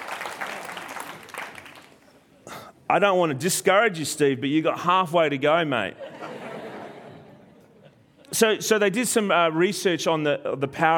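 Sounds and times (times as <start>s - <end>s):
audience applause: 0.0s - 2.2s
speech: 2.9s - 6.2s, 8.4s - 10.9s
laughter: 5.9s - 8.4s.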